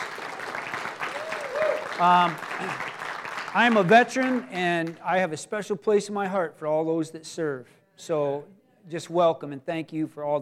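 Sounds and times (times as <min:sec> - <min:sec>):
audience applause: 0:00.0 - 0:05.0
speech: 0:02.0 - 0:02.9, 0:03.6 - 0:10.4.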